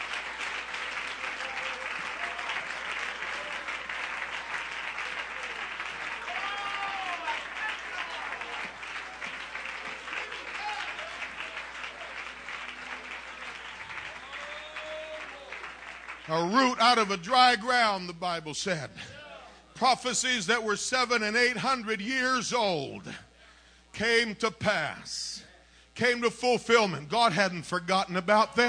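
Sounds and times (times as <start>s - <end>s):
audience hand clapping: 0.0s - 17.9s
speech: 16.3s - 19.2s, 19.8s - 23.2s, 24.0s - 25.3s, 26.0s - 28.6s.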